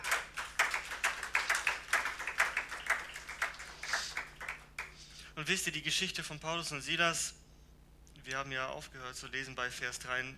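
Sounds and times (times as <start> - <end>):
audience clapping: 0.0 - 5.0
speech: 5.4 - 7.4, 8.2 - 10.3.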